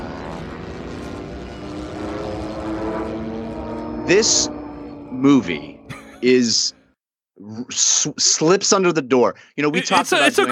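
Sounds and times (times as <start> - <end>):
propeller aircraft engines in a dogfight: 0.0 - 6.7
speech: 4.1 - 6.8, 7.4 - 10.5.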